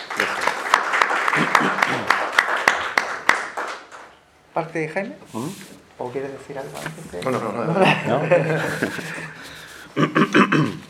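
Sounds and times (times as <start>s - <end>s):
room full of people applauding: 0.0s - 4.1s
louder sharper claps: 0.0s - 4.2s
laughter: 1.2s - 2.3s, 7.4s - 10.8s
speech: 4.6s - 9.4s, 10.0s - 10.8s.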